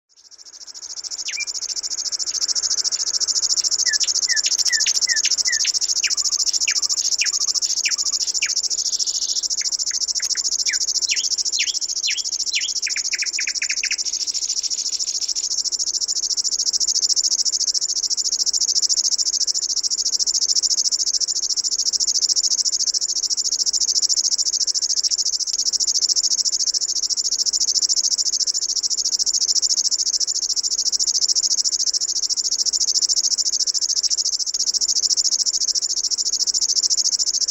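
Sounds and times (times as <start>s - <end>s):
Viitasirkkalintu bird calling: 0.8s - 14.4s.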